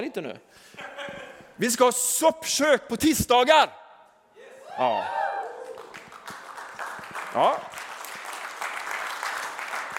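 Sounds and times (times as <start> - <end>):
speech: 0.0 - 3.8, 4.8 - 5.2, 7.3 - 7.8
church congregation clapping to welcome someone to a soup-kitchen team: 5.4 - 9.9.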